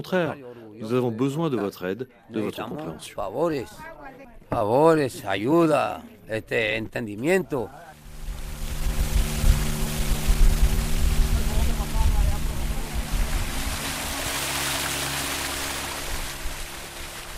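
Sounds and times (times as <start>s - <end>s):
speech: 0.0s - 7.9s
small boat engine humming: 7.4s - 17.3s
water rushing and splashing: 7.9s - 17.3s.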